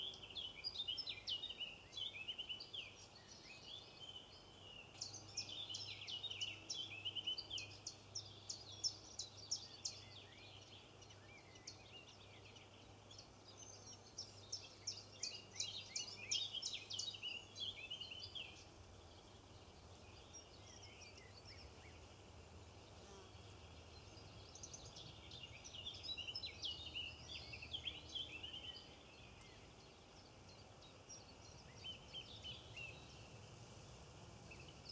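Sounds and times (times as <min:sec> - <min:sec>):
robins chirping and singing: 0:00.0 - 0:22.1, 0:23.1 - 0:33.4
nature sounds: 0:00.0 - 0:34.9.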